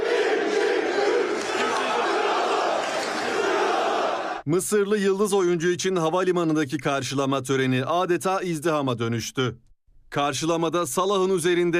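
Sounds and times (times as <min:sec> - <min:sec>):
football fans chanting at airport: 0:00.0 - 0:04.4
speech: 0:04.5 - 0:11.7.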